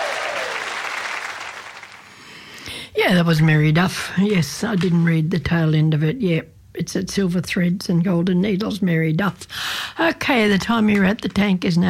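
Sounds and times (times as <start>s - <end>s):
audience applauding at a live music show: 0.0s - 2.4s
speech: 3.0s - 11.8s.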